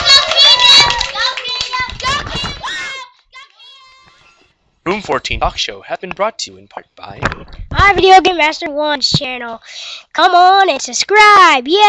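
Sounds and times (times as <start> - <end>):
audience applause: 0.0 - 2.4
speech: 4.9 - 11.8.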